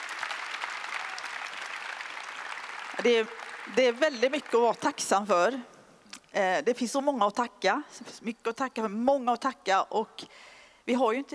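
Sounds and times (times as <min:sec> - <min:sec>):
audience applause for a children's team: 0:00.0 - 0:04.6
speech: 0:03.0 - 0:05.7, 0:06.3 - 0:11.3.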